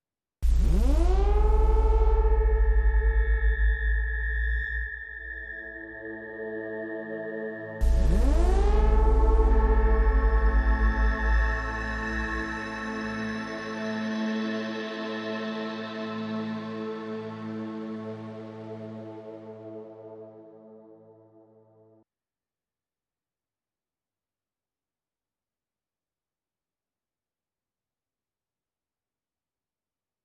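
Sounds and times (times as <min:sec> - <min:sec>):
synth pad: 0:00.4 - 0:22.0.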